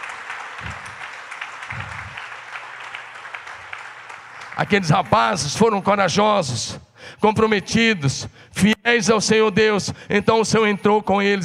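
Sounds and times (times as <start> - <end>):
applause: 0.0 - 5.3
speech: 4.6 - 11.4.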